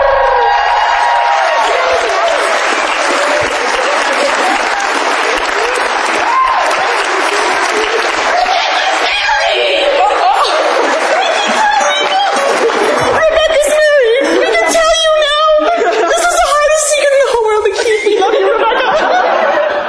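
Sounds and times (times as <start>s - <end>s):
audience applause: 0.1s - 14.6s
laughter: 1.0s - 19.8s.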